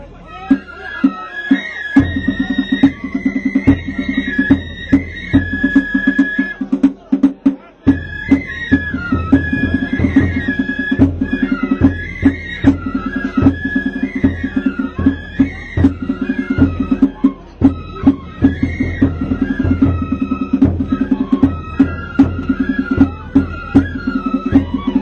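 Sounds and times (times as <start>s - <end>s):
Kagura festival ensemble music: 0.0s - 25.0s.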